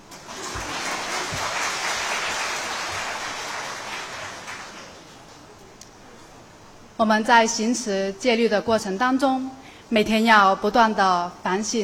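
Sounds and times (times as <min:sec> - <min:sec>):
audience applause: 0:00.0 - 0:05.3
speech: 0:07.0 - 0:11.8.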